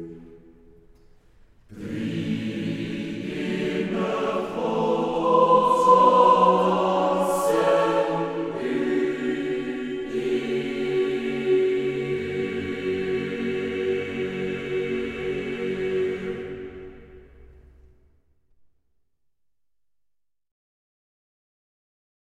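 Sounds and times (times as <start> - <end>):
Afrikaans choir music in concert for evening prayer: 0.0 - 0.9, 1.6 - 17.9.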